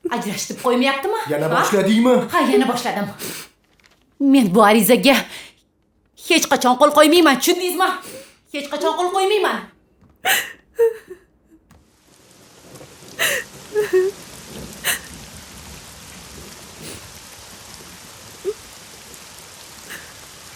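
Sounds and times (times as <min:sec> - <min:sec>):
steady rainfall: 0:00.0 - 0:05.4, 0:06.2 - 0:09.6, 0:11.7 - 0:20.5
speech: 0:00.1 - 0:03.4, 0:04.2 - 0:05.4, 0:06.2 - 0:11.2, 0:13.2 - 0:14.2
sharp pops and knocks: 0:10.0 - 0:10.3, 0:11.6 - 0:12.1.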